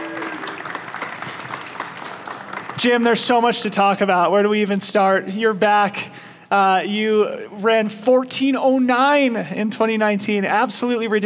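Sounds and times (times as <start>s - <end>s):
audience applause: 0.0s - 3.3s
speech: 2.8s - 11.2s.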